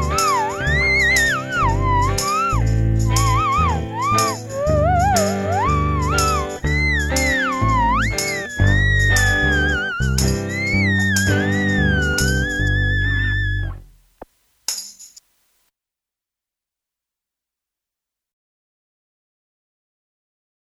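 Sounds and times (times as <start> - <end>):
theremin playing country music: 0.0 - 13.8.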